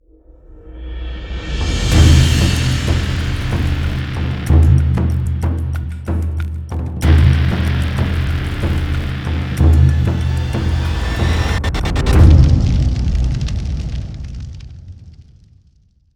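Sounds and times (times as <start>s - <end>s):
cinematic logo intro music: 1.3s - 14.6s.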